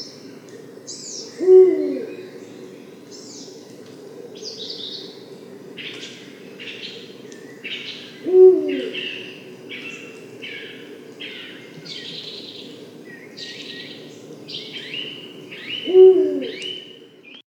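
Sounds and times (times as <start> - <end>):
Eurasian eagle-owl bird call: 1.3 - 2.8, 7.6 - 13.7, 14.6 - 17.1.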